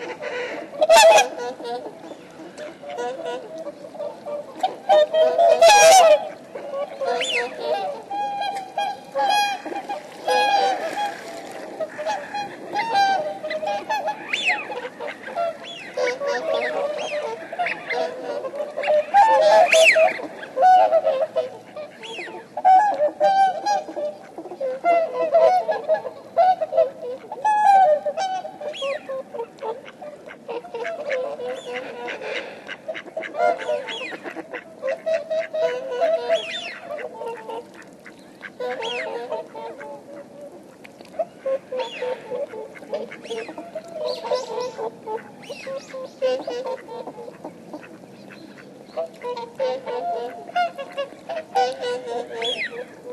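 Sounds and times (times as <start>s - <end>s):
flock of swans honking: 0.0s - 53.1s.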